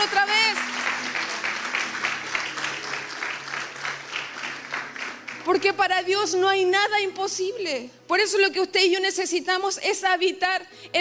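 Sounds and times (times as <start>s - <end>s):
audience applauding: 0.0s - 5.6s
speech: 5.5s - 10.9s.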